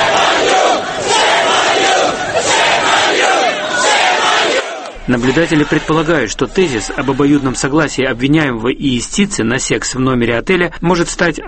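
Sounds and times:
group of hotel maids chanting in unison: 0.0 - 5.0
laughter: 0.0 - 8.2
speech: 5.1 - 11.4.

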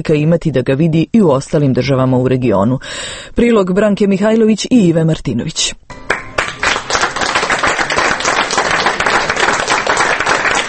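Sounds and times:
speech: 0.0 - 6.1
audience applause after a documentary screening in Belgrade's Media Center: 6.0 - 10.6.

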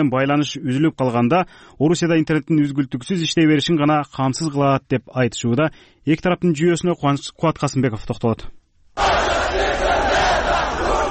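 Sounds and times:
speech: 0.0 - 9.1
protest crowd chanting slogans at a rally in Russia against internet isolation: 9.0 - 11.0.

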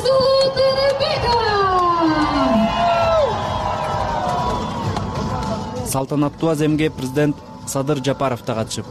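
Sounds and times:
thousands of fans in a square cheering athletes on a red carpet: 0.2 - 5.9
speech: 5.9 - 8.8.

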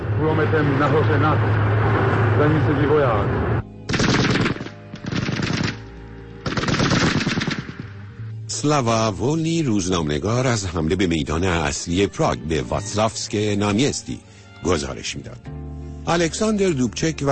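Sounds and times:
speech: 0.2 - 3.5, 8.6 - 17.3
tank machine gun firing: 3.9 - 8.0.

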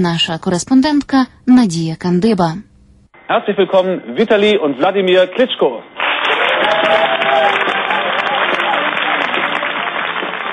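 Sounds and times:
speech: 0.0 - 2.7, 3.3 - 6.7
crowd cheering: 6.0 - 10.5
loud applause: 6.0 - 10.5.

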